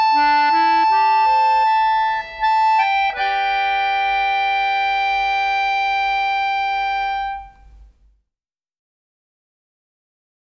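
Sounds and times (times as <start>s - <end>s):
accordion: 0.0s - 7.9s.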